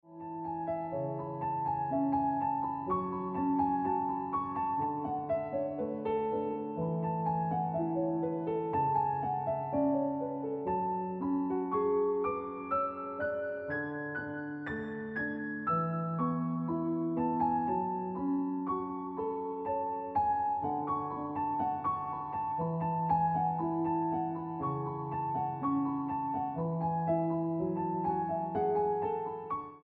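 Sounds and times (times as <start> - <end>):
piano ringtone music: 0.1 - 29.8.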